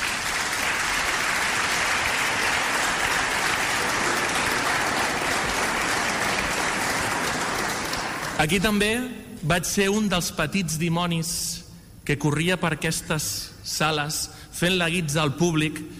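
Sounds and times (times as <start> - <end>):
audience applause: 0.0 - 8.5
speech: 8.4 - 15.9.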